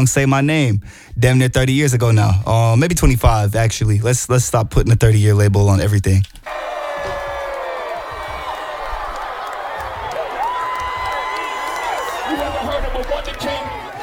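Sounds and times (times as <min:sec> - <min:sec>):
speech: 0:00.0 - 0:06.6
crowd cheering and whooping: 0:06.4 - 0:14.0
scattered clapping: 0:06.5 - 0:14.0.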